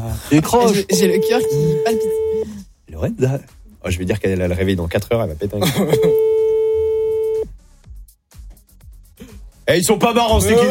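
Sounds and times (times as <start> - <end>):
speech: 0.1 - 6.3, 9.7 - 10.6
telephone ringing: 0.8 - 2.4, 6.0 - 7.4.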